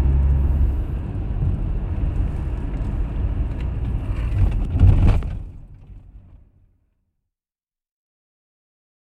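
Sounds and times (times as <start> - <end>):
car driving and slowing down: 0.0 - 6.7.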